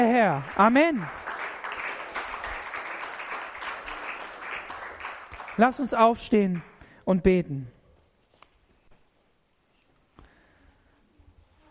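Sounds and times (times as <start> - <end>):
speech: 0.0 - 1.3, 5.6 - 7.8
audience applause: 0.0 - 6.8.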